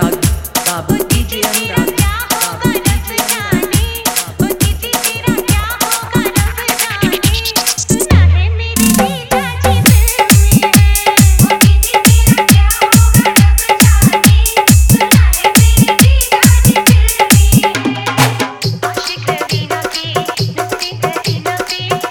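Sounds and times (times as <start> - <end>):
bass: 0.0 - 15.4
dholak drum in Hindi bass mix: 0.0 - 22.0.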